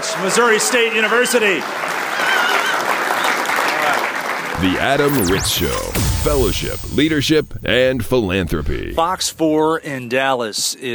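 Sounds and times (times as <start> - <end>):
speech: 0.2 - 2.3, 4.6 - 10.9
crowd applause: 1.6 - 4.6.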